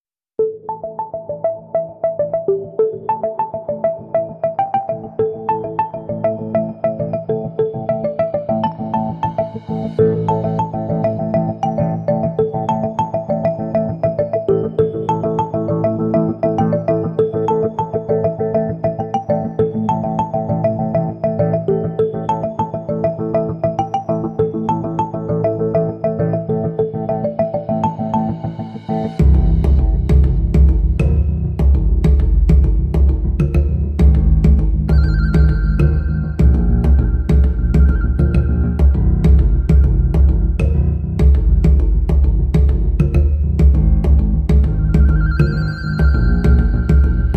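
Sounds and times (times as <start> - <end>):
music bed: 2.6 - 47.3.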